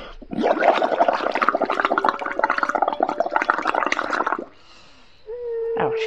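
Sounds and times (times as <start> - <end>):
blowing big bubbles into glass of water: 0.0 - 4.6.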